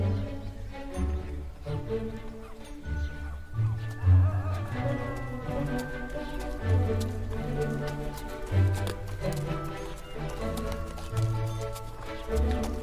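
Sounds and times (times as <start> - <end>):
horse cart hooves clip-clopping through a town: 0.0 - 12.8
voices: 1.8 - 8.4.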